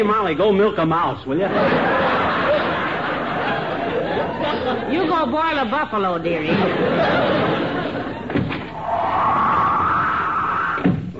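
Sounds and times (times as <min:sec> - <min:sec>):
speech: 0:00.0 - 0:02.2, 0:04.7 - 0:08.0
laughter: 0:01.4 - 0:05.3, 0:06.4 - 0:08.5
door slamming shut: 0:08.2 - 0:11.1.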